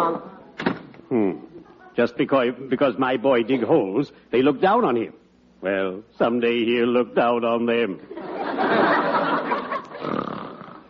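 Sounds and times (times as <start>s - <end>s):
speech: 2.0s - 9.0s
laughter: 8.1s - 10.3s
man snoring: 10.0s - 10.8s.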